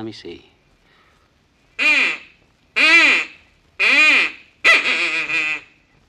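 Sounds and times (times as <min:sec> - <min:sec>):
mating call blown on an animal call: 0:01.8 - 0:05.8.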